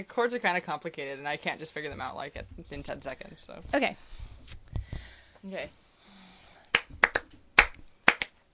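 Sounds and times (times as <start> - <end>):
speech: 0.0 - 4.7, 5.4 - 5.8
rhythmic hand clapping: 6.7 - 8.4.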